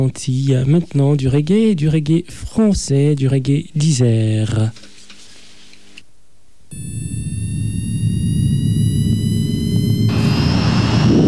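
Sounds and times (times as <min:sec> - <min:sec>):
speech: 0:00.0 - 0:04.9
jet airliner taking off for Pointe-à-Pitre: 0:06.8 - 0:11.2.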